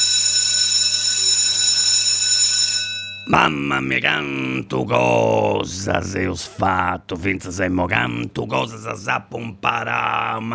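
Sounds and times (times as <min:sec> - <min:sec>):
school bell ringing: 0:00.0 - 0:03.5
speech: 0:03.3 - 0:10.5.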